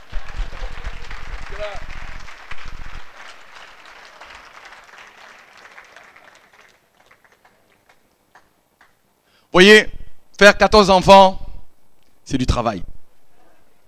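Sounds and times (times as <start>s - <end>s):
audience applause: 0.0s - 9.0s
speech: 1.6s - 1.9s, 9.6s - 11.4s, 12.3s - 12.9s.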